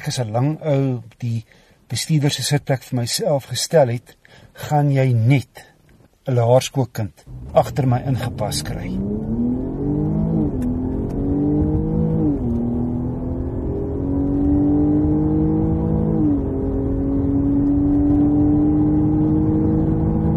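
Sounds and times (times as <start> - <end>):
speech: 0.0 - 5.7, 6.3 - 9.2
Jaguar car supercharged 3-litre V6 engine revving under acceleration: 7.2 - 20.3.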